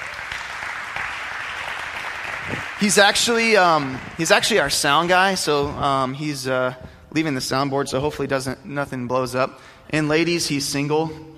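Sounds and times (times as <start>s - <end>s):
audience applause: 0.0s - 5.1s
speech: 2.8s - 11.3s.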